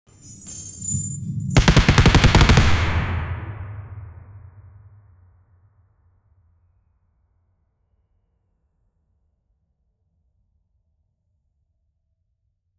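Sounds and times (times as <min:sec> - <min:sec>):
bullet: 0:01.6 - 0:04.8.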